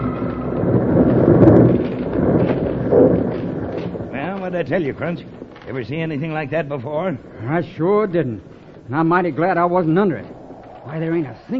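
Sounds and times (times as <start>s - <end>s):
snow avalanche roaring down a slope: 0.0s - 11.5s
speech: 4.5s - 11.5s.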